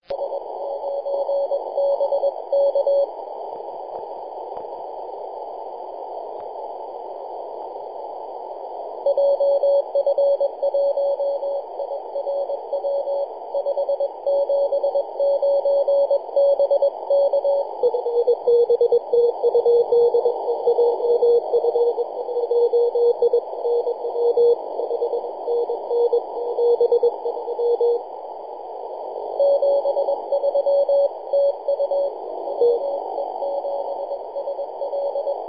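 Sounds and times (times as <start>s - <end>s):
CW Morse code beeps: 0.1s - 3.1s, 9.1s - 28.0s, 29.4s - 35.4s.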